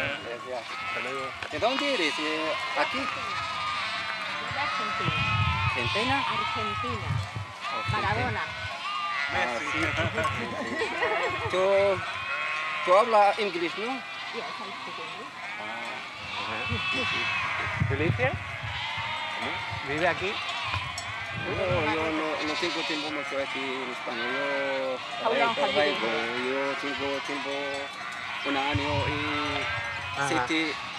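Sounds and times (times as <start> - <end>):
sheep bleating: 0.0 - 30.9
laughter: 9.5 - 12.0.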